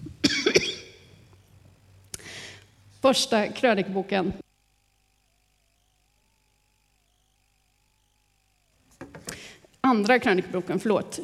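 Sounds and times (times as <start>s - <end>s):
person coughing: 0.2s - 1.0s
speech: 3.0s - 4.4s, 9.9s - 11.2s.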